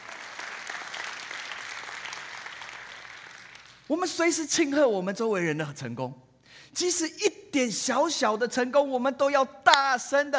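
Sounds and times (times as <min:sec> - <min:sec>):
audience applause: 0:00.0 - 0:03.9
speech: 0:03.9 - 0:10.3.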